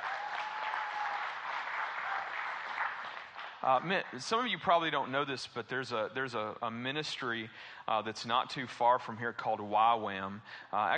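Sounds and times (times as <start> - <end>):
audience applause: 0.0 - 4.2
speech: 3.6 - 10.9.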